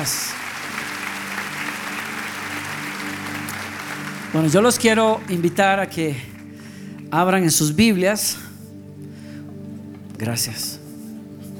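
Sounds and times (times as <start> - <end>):
speech: 0.0 - 0.4, 4.3 - 6.3, 7.1 - 8.4, 10.2 - 10.8
audience applause: 0.0 - 6.6.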